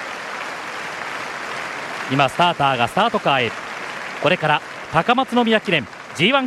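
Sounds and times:
racecourse crowd rhythmic hand-clapping: 0.0s - 6.4s
speech: 2.1s - 6.4s.

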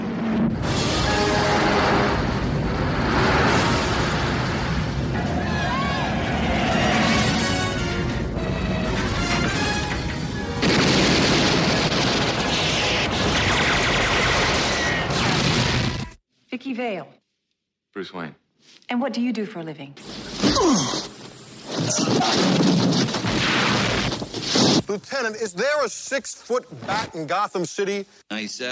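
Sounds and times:
Batman movie trailer booming and crashing: 0.0s - 16.2s
speech: 18.0s - 21.1s, 21.9s - 28.7s.

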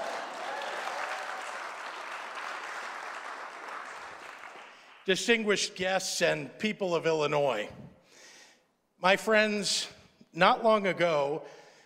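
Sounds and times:
audience applause: 0.0s - 5.0s
speech: 5.0s - 7.8s, 9.0s - 11.6s.

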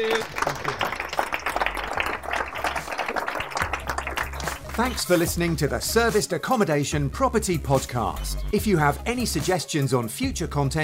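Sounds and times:
audience applause: 0.0s - 5.2s
speech: 4.8s - 10.8s.

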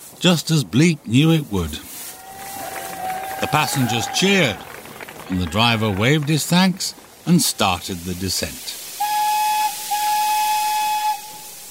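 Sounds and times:
speech: 0.2s - 1.9s, 3.4s - 4.7s, 5.3s - 8.8s
little train's steam whistle: 8.9s - 11.6s.

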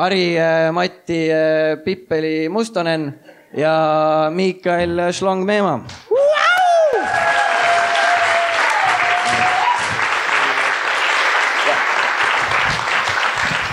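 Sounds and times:
speech: 0.0s - 6.4s
crowd applause: 6.9s - 13.7s.

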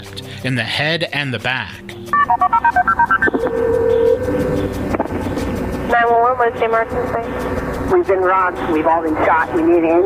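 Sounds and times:
speech: 0.1s - 4.8s, 5.9s - 10.0s
telephone keypad dialing beeps: 2.1s - 4.3s
steady telephone tone: 2.1s - 4.7s.

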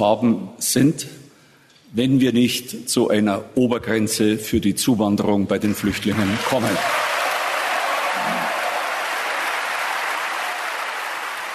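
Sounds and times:
speech: 0.0s - 1.2s, 1.9s - 7.1s
large audience applause: 6.0s - 11.5s.

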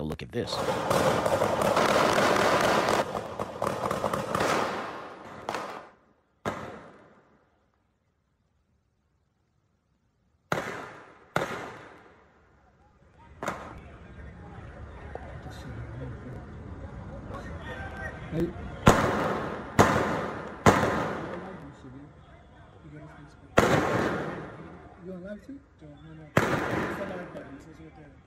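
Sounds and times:
gunshots from a shooting in a video: 0.5s - 7.3s, 10.5s - 12.2s, 13.4s - 13.9s, 18.8s - 21.7s, 23.5s - 25.0s, 26.3s - 27.6s.

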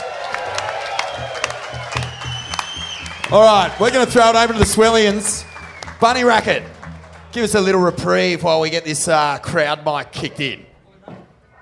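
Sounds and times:
audience applause: 0.0s - 8.4s
speech: 3.3s - 6.7s, 7.3s - 10.7s.

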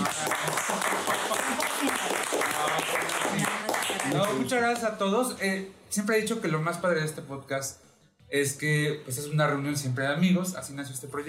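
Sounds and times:
applause: 0.0s - 4.9s
speech: 4.1s - 11.2s.

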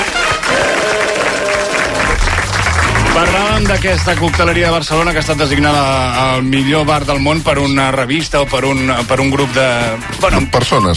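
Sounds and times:
applause: 0.0s - 4.7s
speech: 3.2s - 10.9s.

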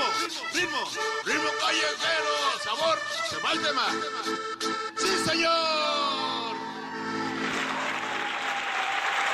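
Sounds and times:
speech: 0.1s - 6.5s
audience applause: 6.9s - 9.3s.

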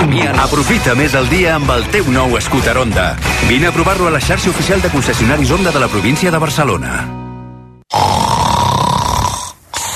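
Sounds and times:
speech: 0.2s - 7.2s
snoring: 7.9s - 9.9s.

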